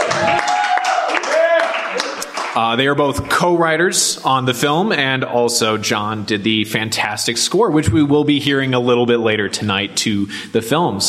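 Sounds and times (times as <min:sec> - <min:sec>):
cheers: 0:00.0 - 0:02.6
audience applause: 0:00.0 - 0:02.9
speech: 0:02.6 - 0:11.0.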